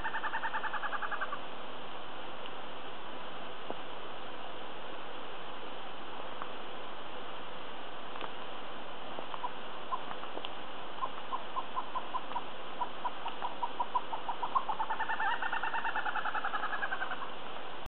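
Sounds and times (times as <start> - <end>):
O. malabaricus calling: 0.0 - 1.5, 9.3 - 17.4
hiss: 0.0 - 17.8.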